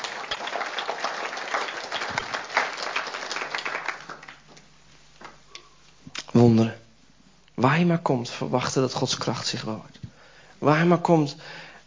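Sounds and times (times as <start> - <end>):
audience applause: 0.0 - 4.5
speech: 7.6 - 10.0, 10.6 - 11.6.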